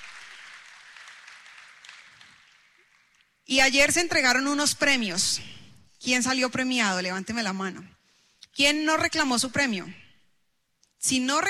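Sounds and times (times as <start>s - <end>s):
applause: 0.0s - 3.5s
speech: 3.5s - 8.0s, 8.6s - 10.0s, 11.0s - 11.4s.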